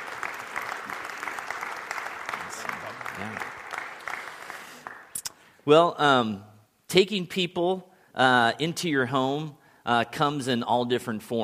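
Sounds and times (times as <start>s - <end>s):
audience applause: 0.0s - 5.2s
speech: 3.2s - 3.5s, 5.7s - 11.4s.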